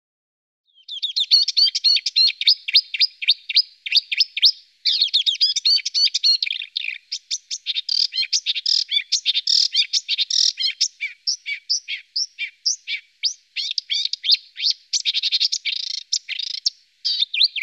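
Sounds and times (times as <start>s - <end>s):
Marsh warbler song: 0.7s - 17.6s.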